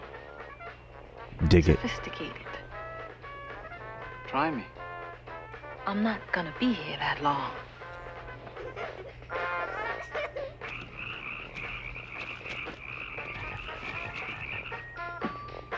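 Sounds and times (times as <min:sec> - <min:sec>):
speech: 0:01.4 - 0:02.6, 0:04.3 - 0:04.8, 0:05.9 - 0:07.7
frogs croaking in a film scene: 0:09.6 - 0:15.6.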